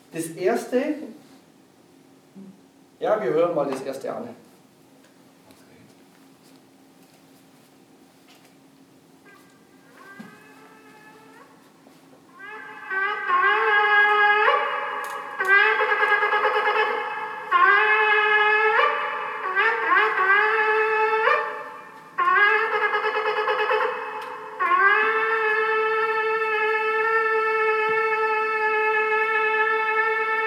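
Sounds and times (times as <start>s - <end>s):
speech: 0.1s - 1.2s, 2.4s - 4.4s
shofar horn being blown: 12.4s - 30.4s.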